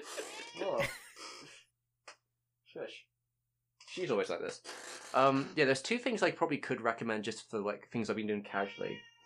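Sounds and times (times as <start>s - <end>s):
cat meowing: 0.2s - 0.8s, 8.5s - 9.2s
speech: 0.7s - 1.0s, 4.0s - 9.1s.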